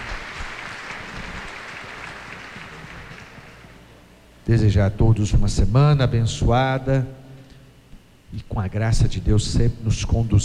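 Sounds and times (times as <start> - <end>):
audience applauding: 0.0 - 3.9
speech: 4.5 - 7.2, 8.3 - 10.4.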